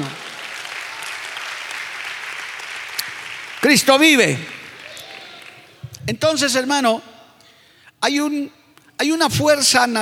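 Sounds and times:
audience applause: 0:00.0 - 0:05.8
speech: 0:03.7 - 0:04.6, 0:06.1 - 0:07.1, 0:08.0 - 0:09.9.

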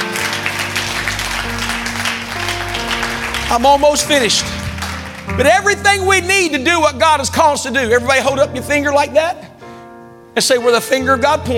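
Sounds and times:
audience clapping: 0:00.0 - 0:05.8
speech: 0:03.5 - 0:04.6, 0:05.3 - 0:09.5, 0:10.4 - 0:11.5.

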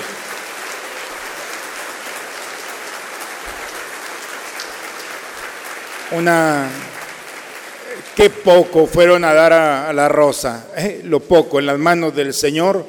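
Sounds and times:
loud applause for missionaries: 0:00.0 - 0:09.9
speech: 0:06.1 - 0:06.9, 0:08.0 - 0:12.8.

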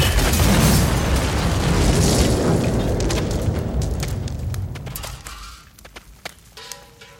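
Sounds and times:
explosive device detonating near a car: 0:00.0 - 0:04.9
crackles and pops of falling debris: 0:00.0 - 0:07.1.

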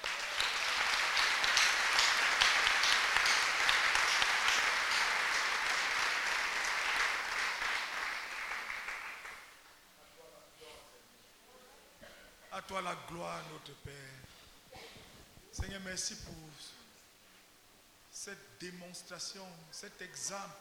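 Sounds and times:
crowd applauding: 0:00.0 - 0:09.6
speech: 0:12.6 - 0:14.3, 0:15.6 - 0:16.8, 0:18.2 - 0:20.5.

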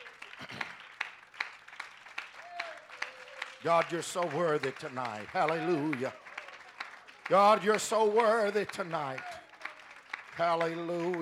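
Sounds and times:
audience clapping hands in praise: 0:00.0 - 0:11.2
raised voices: 0:02.4 - 0:10.0
speech: 0:03.6 - 0:06.2, 0:07.3 - 0:09.4, 0:10.4 - 0:11.2.

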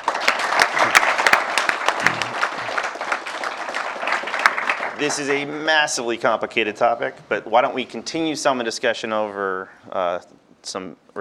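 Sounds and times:
audience clapping: 0:00.0 - 0:06.1
speech: 0:05.0 - 0:11.1.

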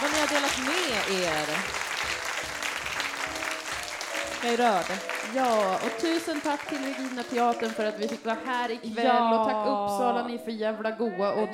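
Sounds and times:
audience applause: 0:00.0 - 0:08.8
speech: 0:01.1 - 0:01.8, 0:04.4 - 0:11.5.

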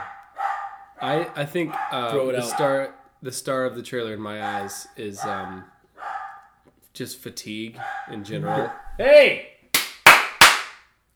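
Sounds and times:
speech: 0:01.0 - 0:05.7, 0:07.0 - 0:09.5
single loud hand clap: 0:09.7 - 0:10.9.

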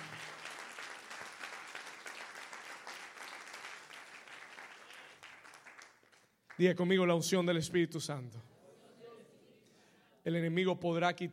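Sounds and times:
audience applause: 0:00.0 - 0:06.6
speech: 0:06.6 - 0:08.5, 0:10.3 - 0:11.3.

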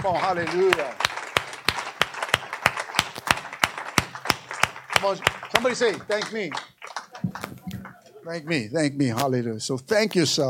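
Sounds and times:
speech: 0:00.0 - 0:01.0, 0:05.0 - 0:06.7, 0:08.2 - 0:10.4
audience clapping in rhythm: 0:00.0 - 0:08.6.

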